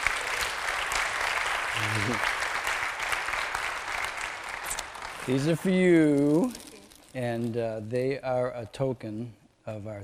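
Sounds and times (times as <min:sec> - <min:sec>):
audience applause at a church gathering: 0:00.0 - 0:05.8
speech: 0:01.8 - 0:02.4, 0:05.3 - 0:10.0.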